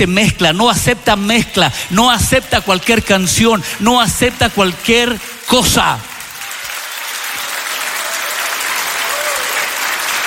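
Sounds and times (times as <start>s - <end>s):
speech: 0.0s - 6.1s
audience applause: 3.9s - 10.2s.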